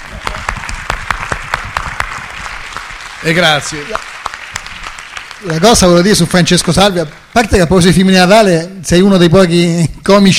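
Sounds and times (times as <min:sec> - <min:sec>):
audience applause: 0:00.0 - 0:07.5
speech: 0:03.2 - 0:04.1, 0:05.4 - 0:10.3.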